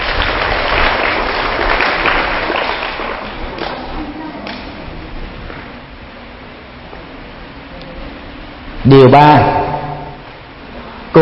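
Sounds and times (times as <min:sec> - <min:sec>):
big round of applause: 0:00.0 - 0:04.6
speech: 0:09.0 - 0:09.6.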